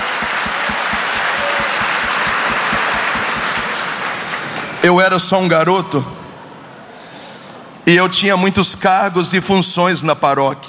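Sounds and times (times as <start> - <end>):
low thumping beat: 0.0 - 3.7
crowd applause: 0.0 - 4.8
speech: 4.8 - 6.2, 7.9 - 10.6.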